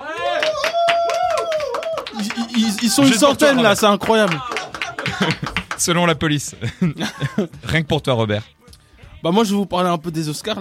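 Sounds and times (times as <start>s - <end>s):
studio audience applause: 0.2s - 6.0s
laughter: 2.1s - 5.8s, 6.5s - 7.7s
speech: 2.9s - 8.6s, 9.2s - 10.5s.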